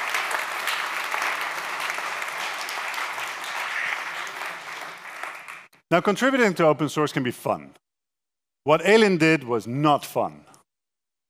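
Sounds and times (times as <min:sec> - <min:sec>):
audience applause: 0:00.0 - 0:05.7
speech: 0:05.9 - 0:07.8, 0:08.6 - 0:10.5.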